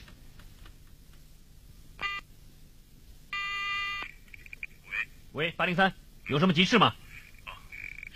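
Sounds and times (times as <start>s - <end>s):
telephone ringing with buzzy electronic trills: 2.0s - 2.3s, 3.3s - 4.1s
speech: 5.4s - 7.0s.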